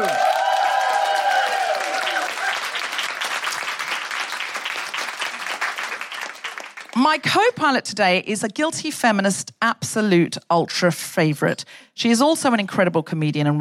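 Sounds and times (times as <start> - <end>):
audience woohooing: 0.0 - 4.2
live comedy audience applauding: 0.0 - 7.2
speech: 7.1 - 13.5.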